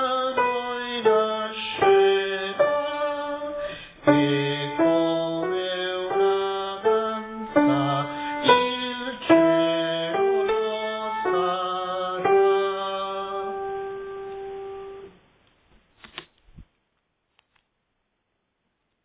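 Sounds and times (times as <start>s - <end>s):
sopranos singing: 0.0s - 15.0s.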